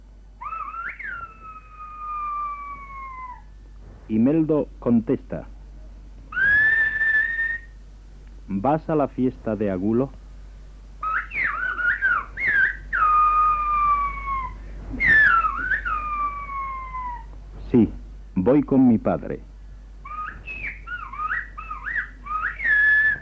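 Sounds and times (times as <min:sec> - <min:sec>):
Gomeran shepherds' whistled language: 0:00.4 - 0:03.4, 0:06.3 - 0:07.8, 0:11.0 - 0:17.2, 0:20.0 - 0:23.2
speech: 0:04.1 - 0:05.5, 0:08.5 - 0:10.2, 0:18.5 - 0:19.5.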